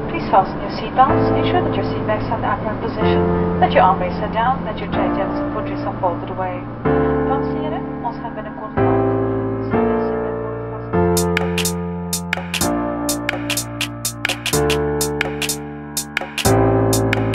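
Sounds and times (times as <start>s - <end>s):
piano: 1.0s - 17.3s
snappy flute groove: 11.2s - 17.3s.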